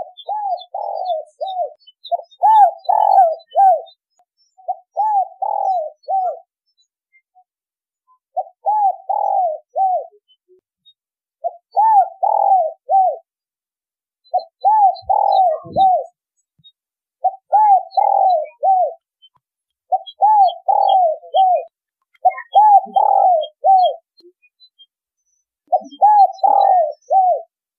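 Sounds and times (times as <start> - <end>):
spotted dove cooing: 0.0 - 3.9, 4.7 - 6.5, 8.4 - 10.2, 11.4 - 13.3, 14.3 - 16.2, 17.2 - 19.0, 19.9 - 24.1, 25.7 - 27.5.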